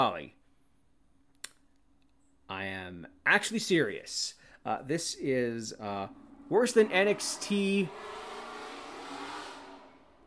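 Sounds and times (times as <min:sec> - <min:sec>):
speech: 0:00.0 - 0:00.4, 0:02.5 - 0:08.2
fast car barreling past a house: 0:05.7 - 0:10.2.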